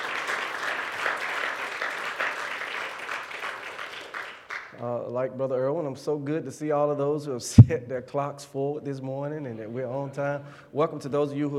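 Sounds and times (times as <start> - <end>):
audience clapping: 0.0 - 4.7
speech: 4.8 - 11.5.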